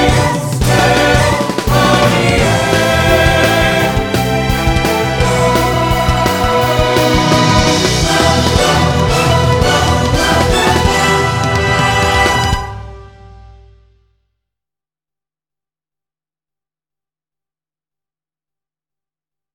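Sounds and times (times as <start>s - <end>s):
accompaniment music: 0.0s - 14.0s.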